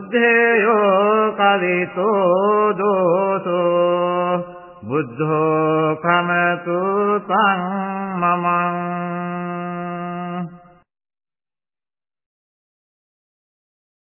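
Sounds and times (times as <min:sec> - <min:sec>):
Buddhist chanting: 0:00.0 - 0:10.6.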